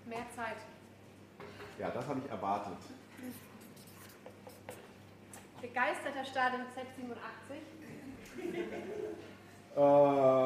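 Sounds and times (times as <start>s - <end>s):
low hum: 0.0s - 10.4s
speech: 0.1s - 0.8s, 1.4s - 3.6s, 5.6s - 10.4s
pen scratching while writing by hand: 3.3s - 4.8s
laughter: 7.9s - 9.4s.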